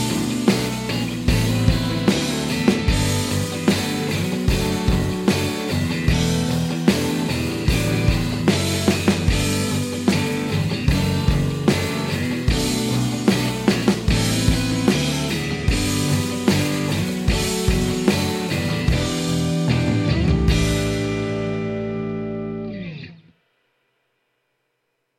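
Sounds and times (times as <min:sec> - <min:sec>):
guitar: 0:00.0 - 0:23.4.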